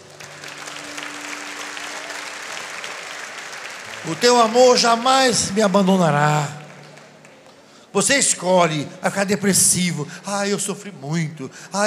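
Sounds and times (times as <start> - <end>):
audience applause: 0.0 - 7.9
speech: 4.0 - 6.6, 7.9 - 11.8.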